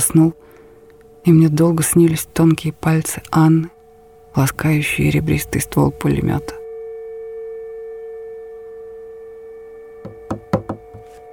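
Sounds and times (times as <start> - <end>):
steady low electrical hum: 0.0 - 11.3
speech: 0.1 - 0.6, 1.2 - 3.8, 4.4 - 6.6
knocking on a door: 10.0 - 11.0.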